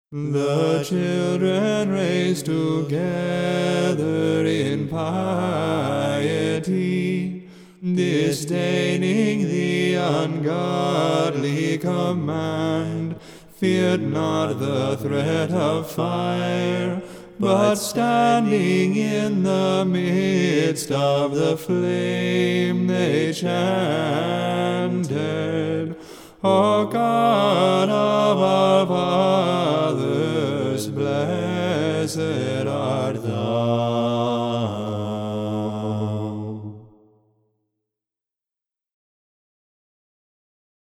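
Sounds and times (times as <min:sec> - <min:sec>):
liturgical chant in Tone I: 0:00.1 - 0:37.3.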